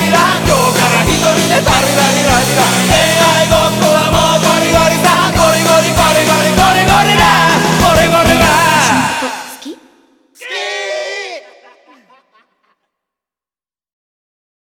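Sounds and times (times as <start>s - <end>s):
backing track without guitar: 0.0s - 9.6s
laughter: 10.4s - 12.9s.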